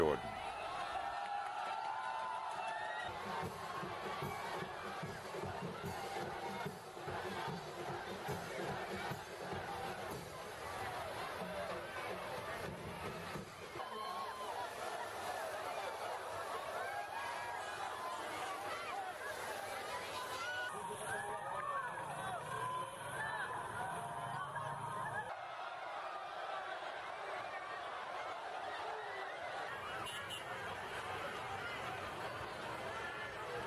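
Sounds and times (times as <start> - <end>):
crowd at feast day of St. John the Baptist celebration in the Philippines: 0.0 - 33.6
water sprayed from fire trucks: 3.2 - 23.0, 29.5 - 33.6
laughter: 13.8 - 33.6.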